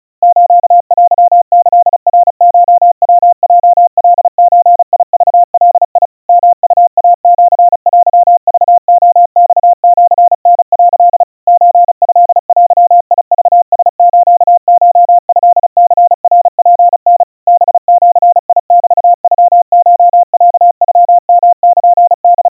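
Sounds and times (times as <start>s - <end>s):
crispy 700 Hz Morse code tones at 130 cpm: 0.2s - 22.4s.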